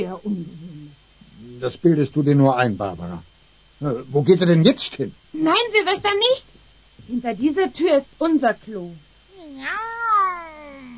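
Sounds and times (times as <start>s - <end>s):
speech: 0.0s - 0.8s, 1.6s - 6.5s, 7.1s - 10.0s
cat meowing: 9.4s - 10.9s.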